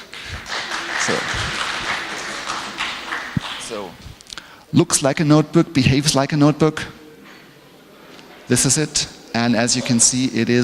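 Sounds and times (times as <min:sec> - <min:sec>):
audience round of applause: 0:00.0 - 0:04.0
speech: 0:01.1 - 0:01.4, 0:04.7 - 0:07.0, 0:08.5 - 0:10.6.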